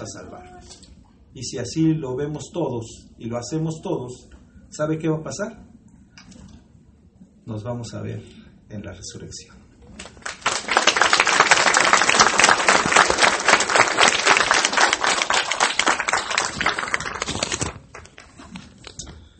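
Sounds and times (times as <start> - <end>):
speech: 0.0 - 5.7, 7.5 - 9.6
audience applause: 10.0 - 18.4.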